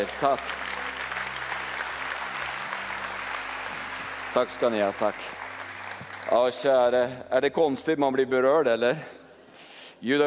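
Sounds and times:
speech: 0.0 - 0.8, 4.4 - 5.4, 6.3 - 9.2, 10.0 - 10.2
audience applause: 0.0 - 7.2.

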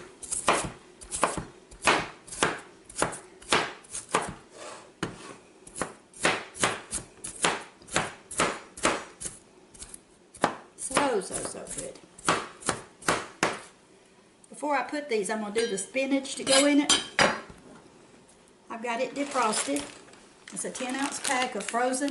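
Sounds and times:
knife chopping water chestnuts on a cutting board: 0.2 - 4.4, 5.0 - 13.7
speech: 14.9 - 17.1, 18.8 - 22.0.

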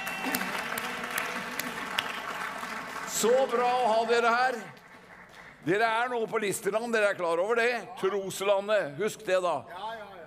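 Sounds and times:
audience applause: 0.0 - 5.6
speech: 3.2 - 4.8, 5.6 - 9.9.

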